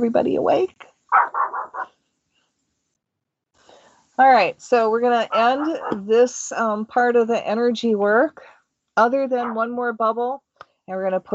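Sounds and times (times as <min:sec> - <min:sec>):
speech: 0:00.0 - 0:01.2, 0:04.2 - 0:11.3
dog barking at night: 0:01.1 - 0:01.9, 0:05.3 - 0:06.0.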